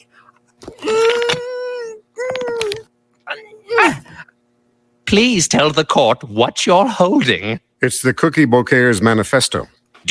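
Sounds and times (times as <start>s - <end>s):
cartoon voices wailing and whimpering: 0.8s - 4.1s
speech: 5.1s - 10.0s.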